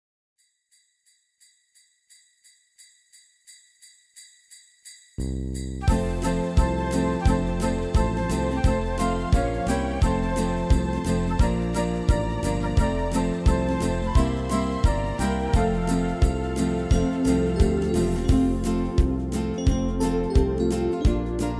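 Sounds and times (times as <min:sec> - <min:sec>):
Christmas song: 0:05.8 - 0:21.5.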